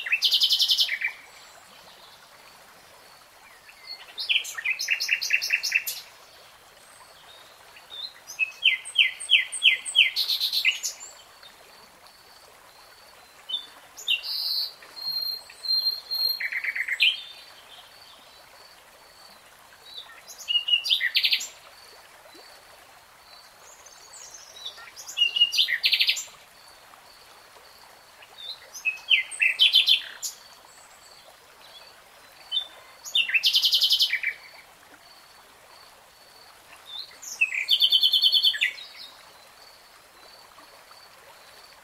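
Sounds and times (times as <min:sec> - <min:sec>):
nightingale song: 0:00.0 - 0:02.0, 0:03.4 - 0:06.1, 0:07.3 - 0:11.2, 0:13.4 - 0:17.9, 0:19.9 - 0:21.6, 0:23.8 - 0:26.4, 0:28.2 - 0:30.4, 0:31.2 - 0:34.7, 0:36.7 - 0:39.5.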